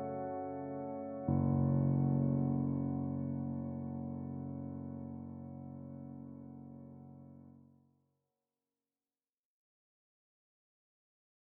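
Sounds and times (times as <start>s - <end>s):
reflective piano piece: 0.0s - 7.5s.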